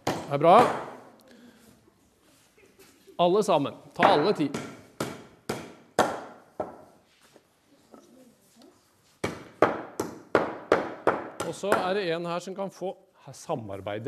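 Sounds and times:
speech: 0.3 - 0.8, 3.2 - 4.7, 11.6 - 14.0
hammer driving nails all the way in during a family church service: 4.0 - 6.8, 9.2 - 11.9.

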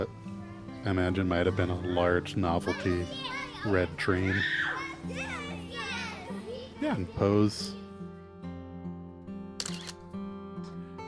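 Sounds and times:
speech: 0.8 - 5.3, 6.8 - 7.8
camera shutter clicking: 9.6 - 10.0.

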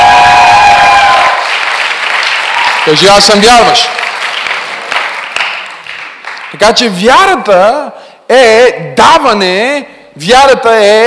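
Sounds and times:
audience applause: 0.0 - 6.6
speech: 2.9 - 4.0, 6.6 - 11.0.

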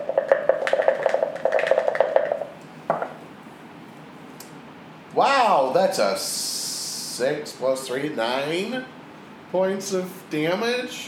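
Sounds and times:
die clattering and tumbling: 0.1 - 2.5
speech: 5.2 - 6.6, 7.2 - 11.0.

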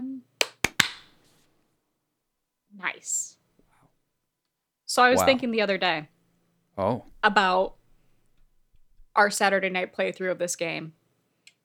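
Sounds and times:
single hand clap for sync: 0.4 - 1.2
speech: 5.0 - 6.1, 6.8 - 7.8, 9.2 - 11.0.

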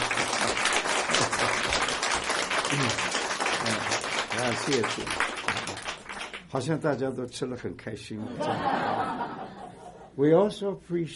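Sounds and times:
audience applauding: 0.0 - 6.7
speech: 2.7 - 3.1, 4.5 - 5.3, 6.5 - 9.5, 10.2 - 11.1
laughter: 8.2 - 10.1.

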